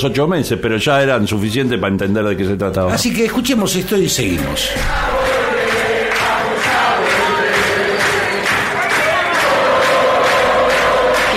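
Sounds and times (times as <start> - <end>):
speech: 0.0 - 5.4
crowd of fans shouting: 4.4 - 11.3.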